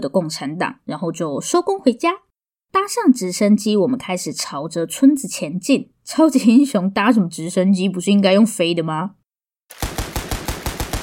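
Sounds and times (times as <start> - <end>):
speech: 0.0 - 9.8
gunfire: 9.7 - 11.0.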